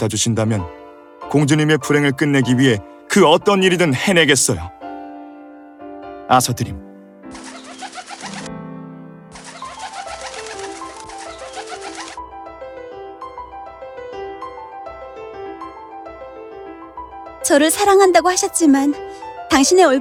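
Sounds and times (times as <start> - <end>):
speech: 0.0 - 4.8, 6.3 - 6.8, 17.5 - 20.0
pigeon cooing: 7.3 - 8.5, 9.3 - 12.2.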